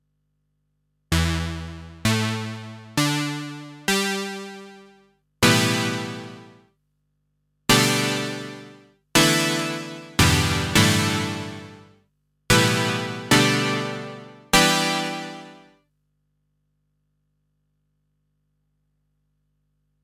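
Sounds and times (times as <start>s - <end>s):
SE70 synth lead: 1.1s - 6.6s, 7.7s - 11.9s, 12.5s - 15.7s.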